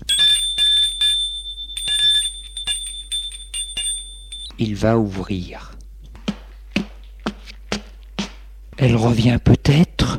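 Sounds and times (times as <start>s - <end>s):
doorbell ringing: 0.0s - 4.6s
speech: 4.6s - 5.8s, 8.8s - 9.9s.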